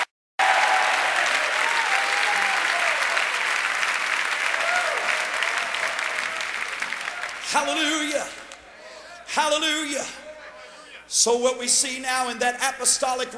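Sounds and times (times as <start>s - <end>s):
audience applause: 0.0s - 8.6s
speech: 7.5s - 8.4s, 9.3s - 10.2s, 11.1s - 13.3s.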